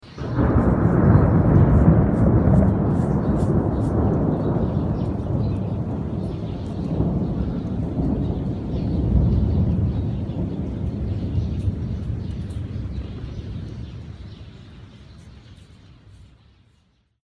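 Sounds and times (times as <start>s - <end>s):
thunder: 0.0s - 15.1s.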